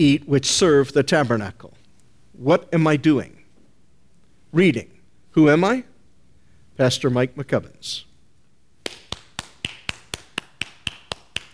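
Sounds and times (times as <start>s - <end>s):
speech: 0.0s - 1.8s, 2.4s - 3.4s, 4.5s - 5.9s, 6.8s - 8.1s
hand claps: 8.8s - 11.5s.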